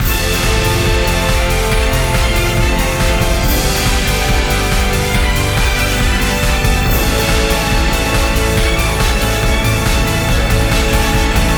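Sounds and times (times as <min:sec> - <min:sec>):
victory music: 0:00.0 - 0:11.5.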